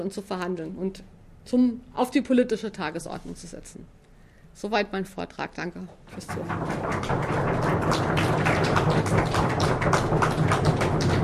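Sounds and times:
speech: 0.0s - 4.0s, 4.6s - 11.2s
audience applause after a lecture: 6.3s - 11.2s.

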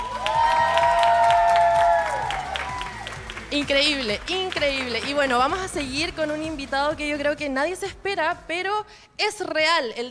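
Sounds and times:
high cheer: 0.0s - 3.5s
audience clapping: 0.0s - 6.6s
speech: 3.5s - 10.0s.

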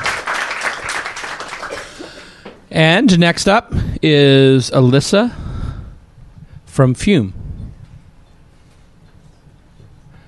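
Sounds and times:
audience applause: 0.0s - 2.4s
speech: 2.8s - 5.4s, 6.8s - 7.4s.

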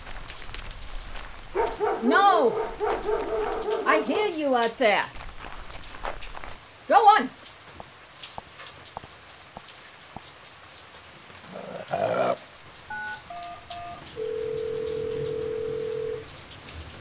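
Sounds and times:
speech: 2.0s - 5.2s, 6.9s - 7.4s
touch-tone dialing beeps during a power outage: 12.9s - 16.2s.

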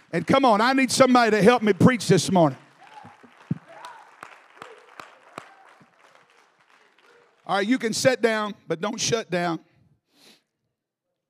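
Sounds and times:
audience clapping: 0.0s - 8.5s
speech: 0.1s - 2.6s, 7.5s - 9.7s.

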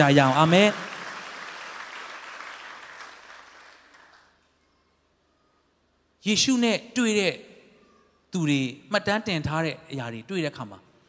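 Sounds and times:
speech: 0.0s - 0.8s, 6.2s - 7.5s, 8.3s - 10.8s
church congregation clapping in praise of Jesus: 0.0s - 4.4s.

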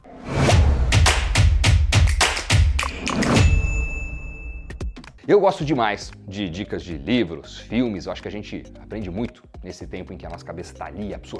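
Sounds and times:
podcast intro jingle thumps and taps: 0.8s - 3.7s, 4.7s - 7.4s, 8.1s - 11.3s
sustained high ringing tone: 3.3s - 5.0s
speech: 5.3s - 11.3s.

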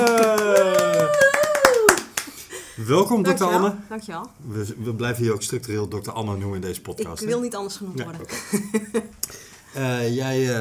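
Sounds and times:
small applause: 0.0s - 2.5s
laughter: 0.0s - 3.6s, 8.3s - 9.1s
speech: 2.9s - 10.5s.

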